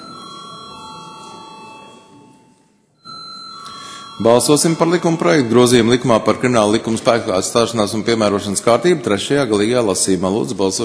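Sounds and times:
electric bell ringing to call a vote: 0:00.0 - 0:05.6
speech: 0:04.2 - 0:10.8.

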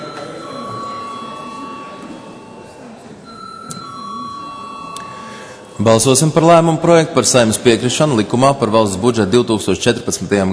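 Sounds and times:
parliament session bell ringing: 0:00.0 - 0:06.9
murmur of voices in the chamber: 0:00.0 - 0:10.5
speech: 0:05.8 - 0:10.5.

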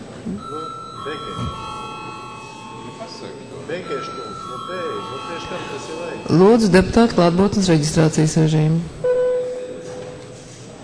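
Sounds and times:
bell ringing: 0:00.4 - 0:08.2
speech: 0:00.5 - 0:01.8, 0:03.1 - 0:09.1.

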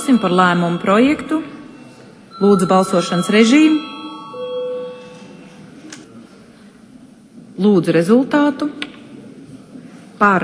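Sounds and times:
parliament session bell ringing: 0:00.0 - 0:06.1
speech: 0:00.1 - 0:01.5, 0:02.4 - 0:03.9, 0:07.6 - 0:08.9, 0:10.2 - 0:10.4.

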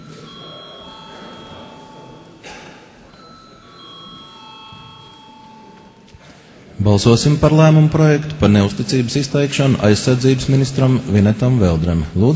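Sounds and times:
parliament chamber bell ringing: 0:00.0 - 0:06.1
speech: 0:06.8 - 0:12.3.

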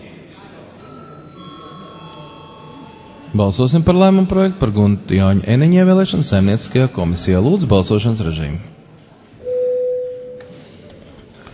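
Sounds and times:
low murmur of voices: 0:00.0 - 0:11.5
bell rung in parliament before a vote: 0:00.8 - 0:03.4, 0:09.4 - 0:10.4
speech: 0:03.3 - 0:08.8.

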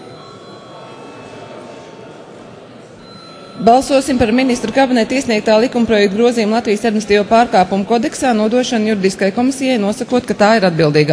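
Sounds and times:
parliament voting bell: 0:00.0 - 0:01.9, 0:03.0 - 0:09.0
speech: 0:03.6 - 0:11.1.

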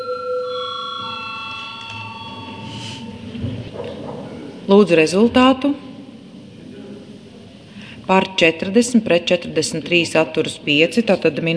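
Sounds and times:
parliament voting bell: 0:00.0 - 0:03.4
speech: 0:04.7 - 0:05.9, 0:08.1 - 0:11.5.

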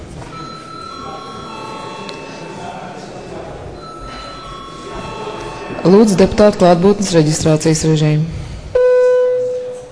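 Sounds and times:
murmur of people talking in the chamber: 0:00.0 - 0:09.8
parliament session bell ringing: 0:00.3 - 0:03.0, 0:03.8 - 0:07.2
speech: 0:05.8 - 0:08.4.

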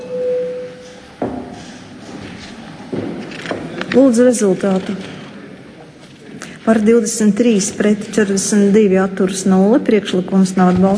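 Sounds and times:
parliament voting system signal tone: 0:00.0 - 0:00.9
speech: 0:03.9 - 0:05.2, 0:06.7 - 0:10.9.

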